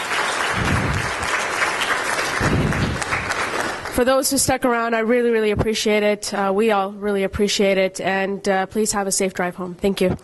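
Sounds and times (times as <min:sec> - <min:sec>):
audience applause: 0:00.0 - 0:03.9
speech: 0:04.0 - 0:10.2.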